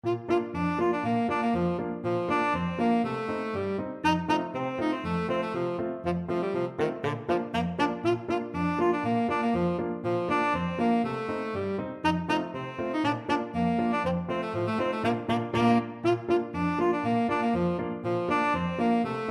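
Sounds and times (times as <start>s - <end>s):
tenor saxophone: 0.0s - 19.2s.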